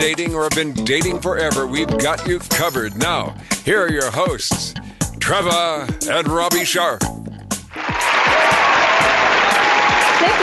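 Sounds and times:
speech: 0:00.0 - 0:07.2
audience applause: 0:07.7 - 0:10.4.

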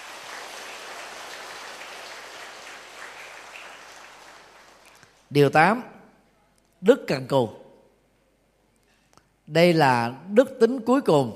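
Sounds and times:
crowd applause: 0:00.0 - 0:05.2
speech: 0:05.3 - 0:05.9, 0:06.8 - 0:07.6, 0:09.5 - 0:11.3.

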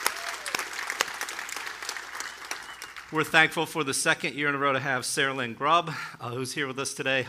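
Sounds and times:
audience applause at a women's church gathering: 0:00.0 - 0:03.3
speech: 0:03.1 - 0:07.2.

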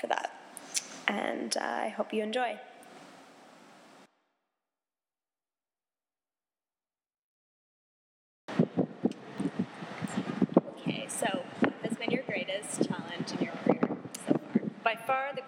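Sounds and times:
speech: 0:00.0 - 0:00.2, 0:01.1 - 0:02.7, 0:14.9 - 0:15.4
wind blowing across the microphone during an outdoor interview: 0:08.5 - 0:15.4.

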